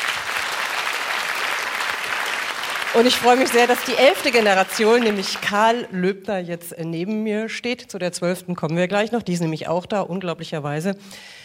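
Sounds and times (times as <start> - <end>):
audience applause honouring a long-established family toy shop: 0.0 - 5.9
speech: 3.0 - 11.4.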